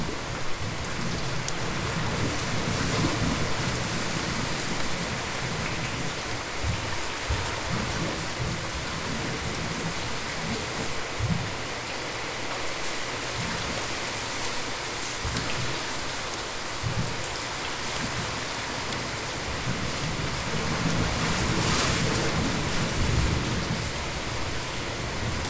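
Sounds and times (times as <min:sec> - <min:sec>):
rain: 0:00.0 - 0:25.4.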